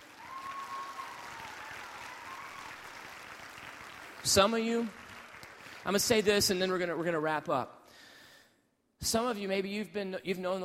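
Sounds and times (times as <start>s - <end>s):
audience applause: 0.0s - 6.0s
speech: 4.2s - 5.0s, 5.8s - 7.8s, 9.0s - 10.6s.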